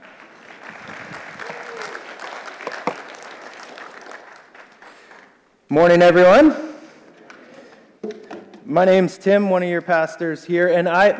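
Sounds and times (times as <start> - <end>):
audience clapping: 0.0 - 5.5
speech: 5.7 - 6.6, 8.8 - 11.1.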